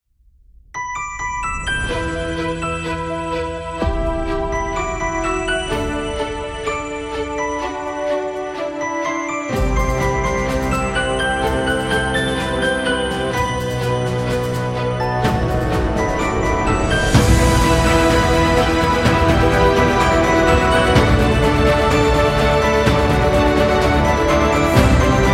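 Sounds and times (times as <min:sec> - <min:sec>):
epic dramatic trailer music: 0:00.8 - 0:25.3.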